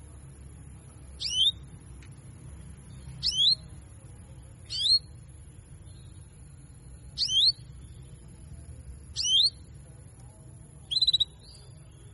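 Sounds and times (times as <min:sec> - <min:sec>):
female Belgian canary giving cuit cuit calls: 0:01.1 - 0:01.8, 0:02.7 - 0:09.8, 0:10.8 - 0:12.1.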